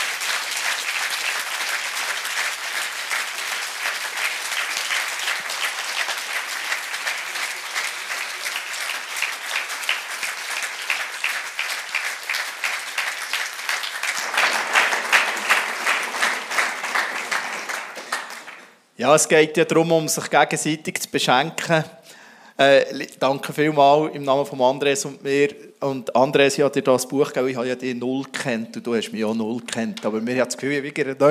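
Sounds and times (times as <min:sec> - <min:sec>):
audience applause: 0:00.0 - 0:18.9
speech: 0:19.0 - 0:22.0, 0:22.6 - 0:31.2.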